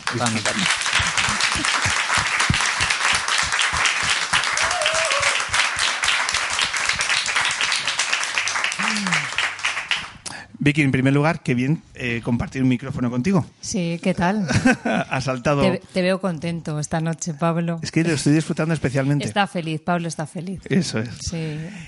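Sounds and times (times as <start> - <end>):
crowd applause: 0.0 - 10.2
speech: 0.1 - 2.3, 10.6 - 21.8
laughter: 1.0 - 2.2, 14.5 - 15.2.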